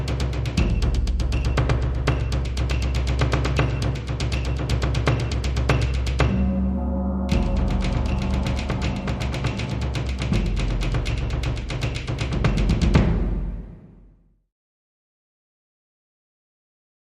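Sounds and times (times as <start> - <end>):
Japanese music loop: 0.0 - 13.6.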